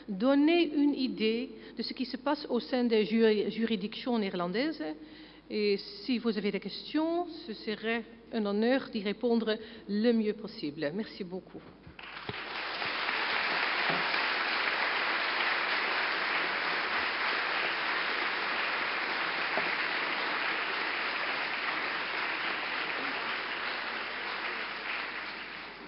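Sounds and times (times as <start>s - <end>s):
speech: 0.1s - 11.8s
audience applause: 12.0s - 25.8s.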